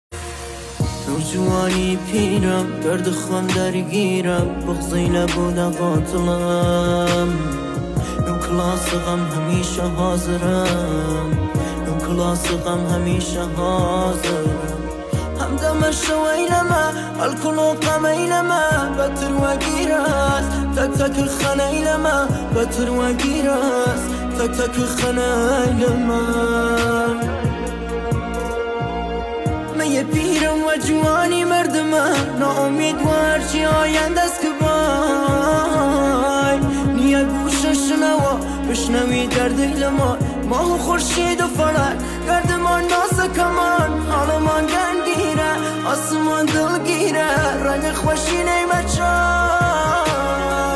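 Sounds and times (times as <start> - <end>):
piano music: 0.1 - 50.7.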